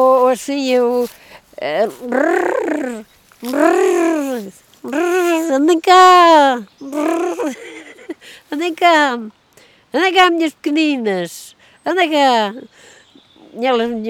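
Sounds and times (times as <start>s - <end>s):
herder's vocal call to sheep and cows: 0.0s - 7.4s
speech: 0.0s - 12.9s, 13.5s - 14.0s.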